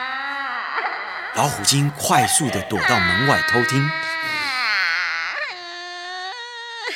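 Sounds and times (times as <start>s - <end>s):
child crying: 0.0s - 6.9s
speech: 1.4s - 4.5s.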